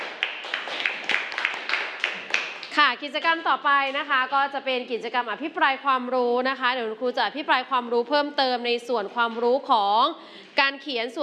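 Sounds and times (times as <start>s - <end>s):
class applauding: 0.0s - 2.8s
speech: 2.8s - 11.2s.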